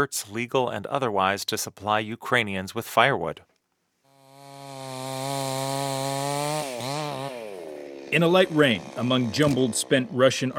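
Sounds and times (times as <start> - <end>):
speech: 0.0 - 3.5, 8.1 - 10.5
saw cutting a half-burnt tree: 4.1 - 10.5.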